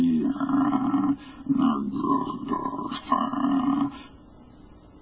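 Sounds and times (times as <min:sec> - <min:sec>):
hideous croaking roar: 0:00.2 - 0:04.1.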